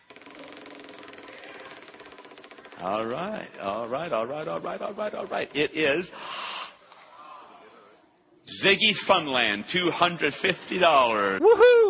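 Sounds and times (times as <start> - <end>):
prize wheel for cash prizes spun at a First Baptist Church event: 0.0 - 6.0
speech: 2.8 - 6.4, 8.6 - 11.8.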